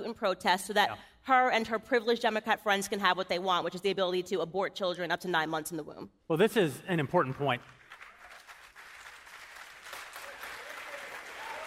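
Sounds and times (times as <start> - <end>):
speech: 0.1 - 7.8
audience applause: 7.2 - 11.6.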